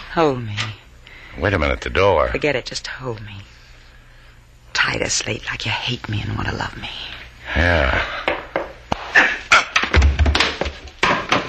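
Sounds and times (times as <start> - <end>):
speech: 0.2 - 0.7, 1.4 - 3.5, 4.8 - 8.2
sharp knocks and heavy thuds of a man struck with a gun butt: 9.8 - 11.4.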